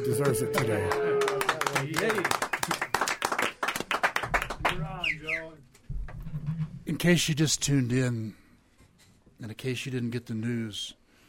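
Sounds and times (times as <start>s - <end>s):
person whooping: 0.0s - 1.8s
speech: 0.0s - 2.8s, 7.0s - 8.4s, 9.4s - 11.0s
crowd clapping: 0.0s - 5.4s.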